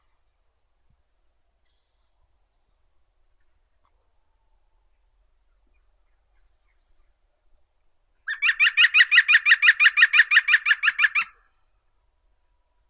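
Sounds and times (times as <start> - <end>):
green woodpecker Picus viridis: 8.3 - 11.3.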